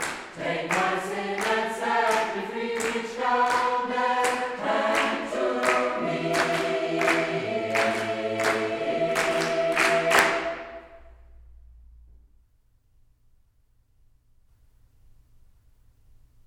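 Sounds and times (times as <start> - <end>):
ensemble playing together: 0.0 - 11.2.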